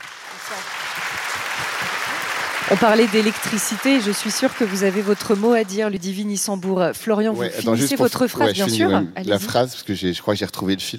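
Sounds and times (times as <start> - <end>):
audience applause welcoming a guest onto a show: 0.0 - 6.0
speech: 2.7 - 10.9.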